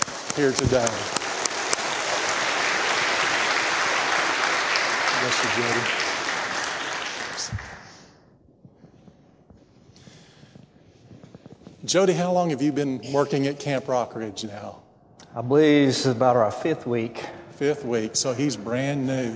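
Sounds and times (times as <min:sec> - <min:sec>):
audience applause: 0:00.0 - 0:08.1
speech: 0:00.4 - 0:01.2, 0:05.2 - 0:06.0, 0:11.9 - 0:14.8, 0:15.4 - 0:19.3.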